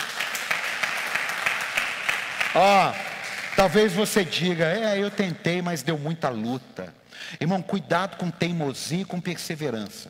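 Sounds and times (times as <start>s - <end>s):
audience applause: 0.0s - 5.2s
speech: 2.6s - 3.0s, 3.6s - 10.0s.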